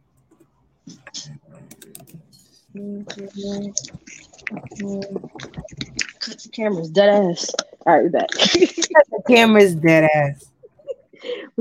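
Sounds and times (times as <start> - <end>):
computer keyboard typing: 0.1 - 6.3
speech: 2.8 - 10.5.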